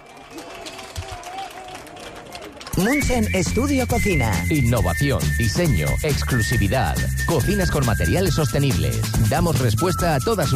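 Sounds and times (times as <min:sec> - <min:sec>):
quiet audience applause: 0:00.0 - 0:03.0
speech: 0:02.8 - 0:10.5.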